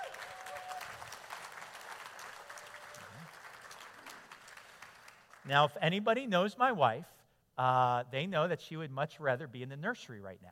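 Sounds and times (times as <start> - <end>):
audience applause welcoming a speaker's wife onto a stage: 0.0 - 5.4
speech: 5.5 - 10.4.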